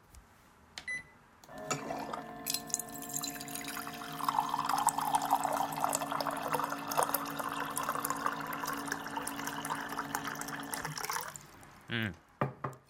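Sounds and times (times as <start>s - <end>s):
hot water poured from pot into cup: 1.6s - 11.7s.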